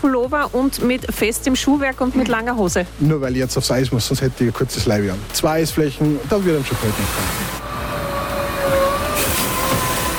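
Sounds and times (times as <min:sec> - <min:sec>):
speech: 0:00.0 - 0:07.6
ice resurfacing machine driving over an ice hockey academy rink in Liefering: 0:07.2 - 0:10.1.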